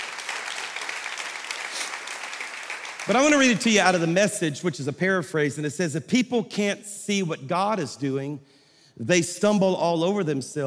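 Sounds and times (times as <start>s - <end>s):
audience clapping: 0.0s - 4.2s
speech: 3.1s - 10.6s.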